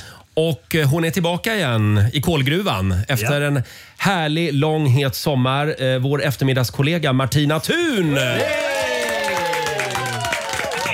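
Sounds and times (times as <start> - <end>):
speech: 0.4 - 8.8
studio audience cheering: 7.9 - 10.9
studio audience clapping on a morning show: 8.2 - 10.9.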